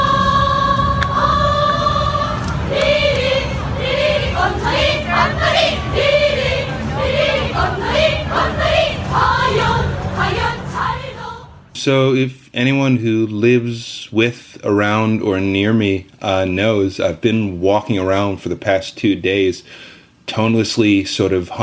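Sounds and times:
cheer squad chanting in unison: 0.0 - 11.5
continuous crowd hum: 0.0 - 12.0
speech: 11.8 - 21.6.

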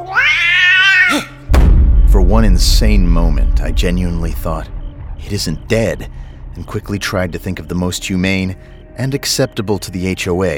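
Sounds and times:
cat caterwauling shriek: 0.0 - 1.4
speech: 2.3 - 10.5.

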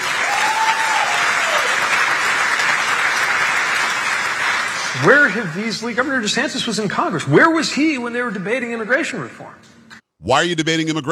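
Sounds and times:
audience applause at a political speech: 0.0 - 6.1
speech: 5.0 - 11.1.

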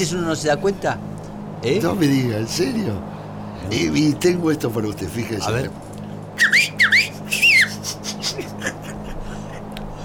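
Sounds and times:
speech: 0.0 - 6.5
recorded bird calls: 6.4 - 8.5
laughter: 7.4 - 10.0.

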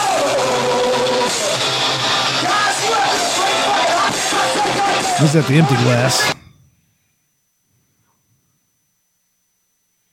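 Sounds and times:
thrash metal band's distorted guitars: 0.3 - 6.6
thrash metal shouted vocals: 2.4 - 6.4
speech: 5.2 - 6.4.

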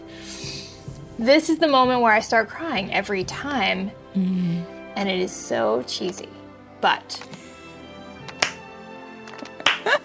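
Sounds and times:
speech: 1.2 - 7.4
slow clap: 8.2 - 10.0.

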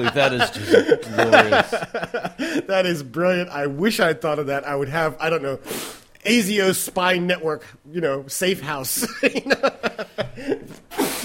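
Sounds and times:
laughter: 0.0 - 2.7, 9.0 - 11.2
speech: 0.0 - 10.8
person sneezing: 10.6 - 11.2.

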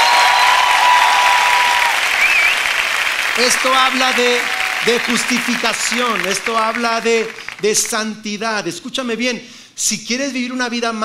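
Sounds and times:
audience applause: 0.0 - 7.9
speech: 3.4 - 11.0.

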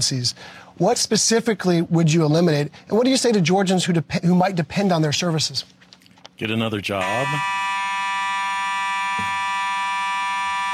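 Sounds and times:
speech: 0.0 - 5.8, 6.4 - 7.6
alarm blaring: 7.0 - 10.7.

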